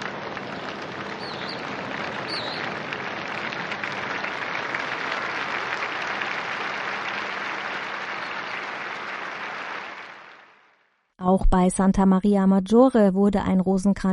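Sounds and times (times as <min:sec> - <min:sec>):
crowd applause after prayer: 0:00.0 - 0:10.9
speech: 0:11.2 - 0:14.1.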